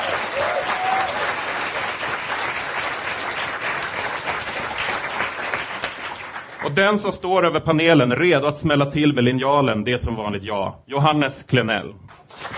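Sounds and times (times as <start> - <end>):
audience applause: 0.0 - 6.7, 12.1 - 12.5
speech: 6.6 - 12.1.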